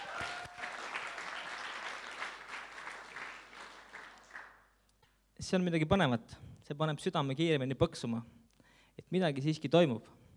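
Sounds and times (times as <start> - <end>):
audience applause: 0.0 - 4.6
speech: 5.4 - 8.4, 9.1 - 10.2.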